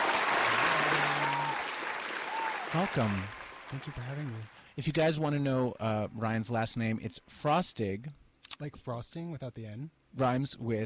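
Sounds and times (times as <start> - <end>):
studio audience applause: 0.0 - 4.6
speech: 2.7 - 10.8.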